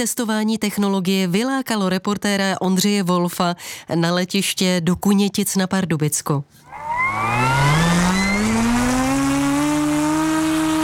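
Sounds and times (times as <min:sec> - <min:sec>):
speech: 0:00.0 - 0:06.7
model airplane engine buzzing in flight: 0:06.6 - 0:10.8.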